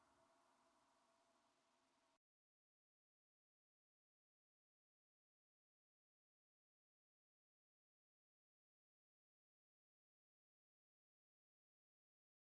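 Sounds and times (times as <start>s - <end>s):
percussion: 0.0s - 2.2s.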